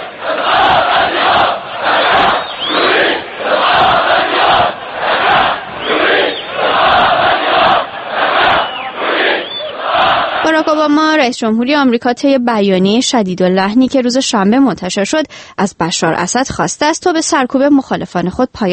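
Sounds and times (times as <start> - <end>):
large crowd of protesters chanting a slogan at a funeral: 0.0 - 11.4
speech: 10.8 - 18.7.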